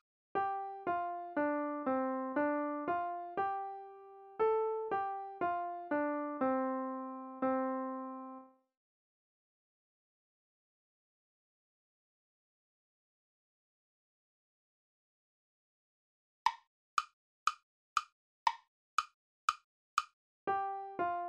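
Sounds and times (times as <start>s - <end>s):
melodic music: 0.4s - 8.5s, 20.5s - 21.2s.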